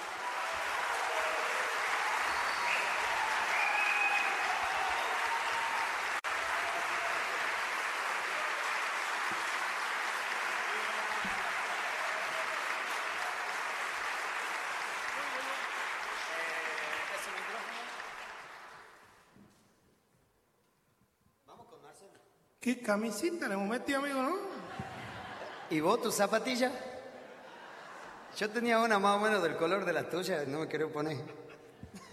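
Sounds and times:
audience applause: 0.0s - 19.3s
speech: 22.7s - 24.5s, 25.7s - 26.9s, 28.4s - 31.4s
laughter: 24.5s - 26.5s, 27.1s - 29.0s, 31.0s - 32.1s.

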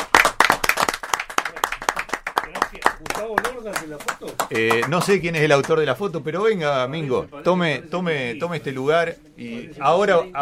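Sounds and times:
audience applause: 0.0s - 5.8s
speech: 2.5s - 10.4s.

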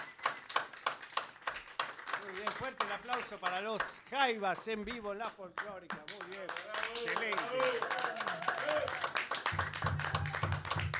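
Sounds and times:
studio audience applause: 0.0s - 4.1s, 6.0s - 10.9s
speech: 2.6s - 9.2s.

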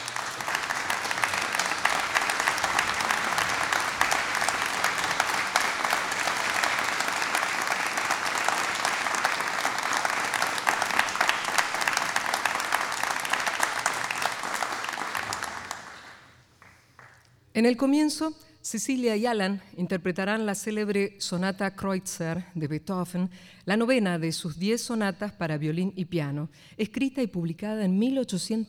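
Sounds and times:
large audience applause in an auditorium: 0.0s - 17.2s
speech: 17.6s - 28.6s.

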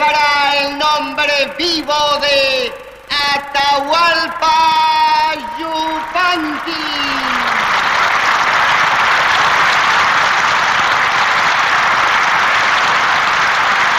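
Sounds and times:
speech: 1.0s - 7.4s
applause from a large plaza crowd: 5.3s - 13.9s.

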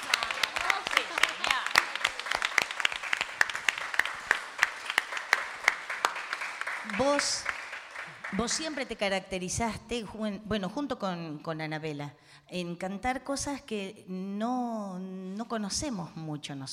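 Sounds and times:
crowd applauding: 0.0s - 9.0s
speech: 7.0s - 7.5s, 8.3s - 16.7s.

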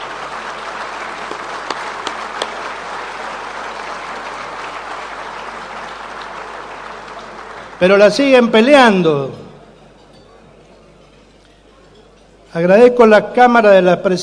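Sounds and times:
applause: 0.0s - 9.0s
speech: 7.8s - 9.4s, 12.6s - 14.2s.

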